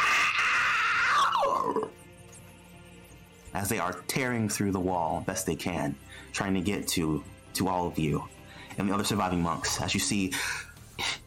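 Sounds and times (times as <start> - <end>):
shrieks and howls of the undead: 0.0 - 1.9
speech: 3.6 - 10.7.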